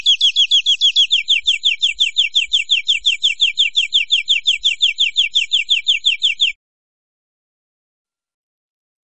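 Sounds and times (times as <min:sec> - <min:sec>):
European greenfinch buzzy trill: 0:00.0 - 0:06.6.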